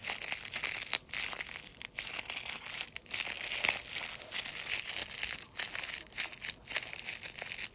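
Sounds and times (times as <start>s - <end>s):
crackling and crinkling: 0.0s - 7.7s.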